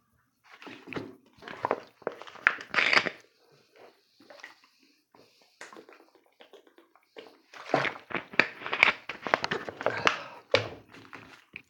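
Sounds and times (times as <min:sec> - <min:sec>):
plastic water bottle clunks and crinkles: 0:00.6 - 0:03.2, 0:07.6 - 0:11.6.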